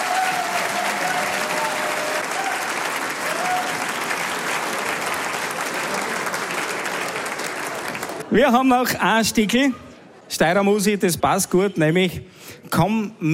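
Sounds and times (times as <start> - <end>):
crowd clapping: 0.0 - 8.4
speech: 8.3 - 13.3.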